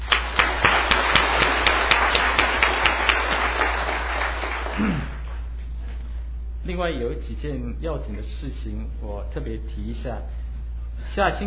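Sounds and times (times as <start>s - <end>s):
audience clapping: 0.0s - 5.4s
speech: 6.7s - 10.4s, 11.0s - 11.4s.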